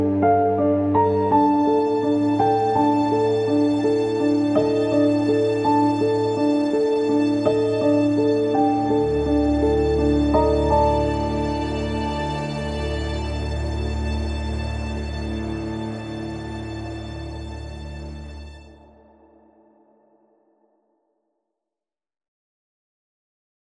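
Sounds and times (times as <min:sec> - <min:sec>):
keyboard music: 0:00.0 - 0:18.3.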